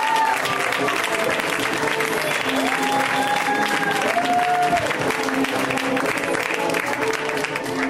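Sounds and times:
comedy show audience applause: 0.0 - 7.8.

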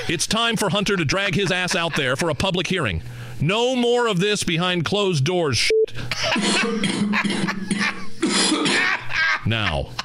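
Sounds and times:
laughter: 0.0 - 2.6, 6.1 - 10.0
speech: 0.1 - 8.0, 9.4 - 10.0
wet hacking cough: 6.1 - 9.1.

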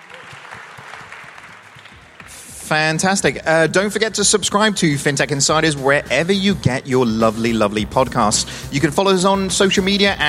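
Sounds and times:
audience applause: 0.0 - 2.6
speech: 2.7 - 10.2.

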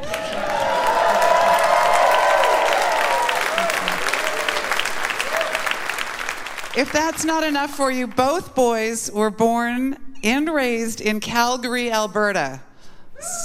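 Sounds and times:
audience clapping: 0.0 - 7.5
speech: 6.8 - 13.4.

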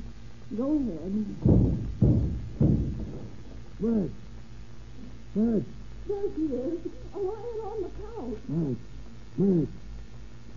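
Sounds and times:
speech: 0.5 - 2.0, 3.8 - 4.3, 5.3 - 9.8
door being broken in: 1.4 - 3.8.

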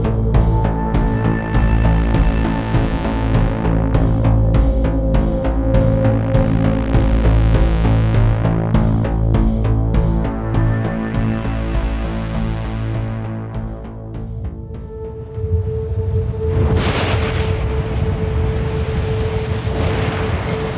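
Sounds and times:
steady droning tone: 0.0 - 20.7
deep rolling thunder in heavy storm: 14.7 - 20.7
sharp loud thunder crack: 15.4 - 20.7.

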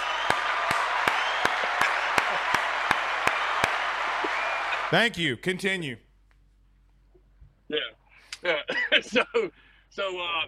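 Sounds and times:
round of applause: 0.0 - 5.0
speech: 4.9 - 6.1, 8.4 - 10.4
laughter: 8.4 - 9.5.

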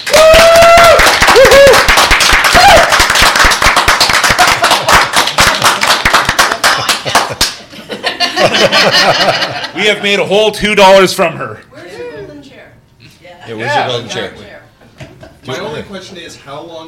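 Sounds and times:
audience applause: 0.0 - 7.6
laughter: 4.3 - 5.2, 6.5 - 10.2
speech: 8.8 - 11.7, 13.5 - 14.4, 15.4 - 16.8.

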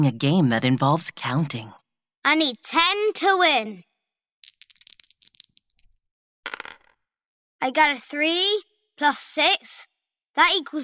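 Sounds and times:
speech: 0.0 - 3.9, 7.6 - 10.8
dice rattling for a board game: 4.4 - 7.0.

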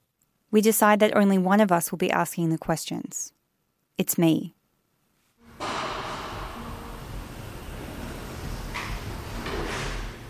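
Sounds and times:
speech: 0.5 - 3.4, 4.0 - 4.6
heavy sliding metal jail door sliding open: 5.4 - 10.2.

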